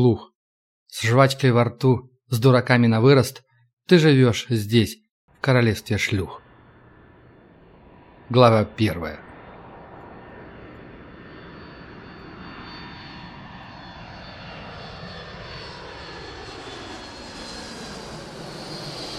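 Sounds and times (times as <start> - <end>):
speech: 0.0 - 0.3, 0.9 - 6.4, 8.3 - 9.2
jet airplane engine roar landing: 5.8 - 19.1.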